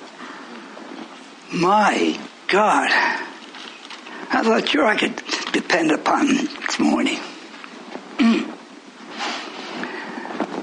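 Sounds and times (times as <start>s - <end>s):
breathy rustling noise: 0.0s - 1.4s, 2.3s - 4.5s, 7.2s - 10.6s
speech: 1.5s - 3.2s, 4.3s - 7.3s
person sneezing: 8.2s - 8.6s.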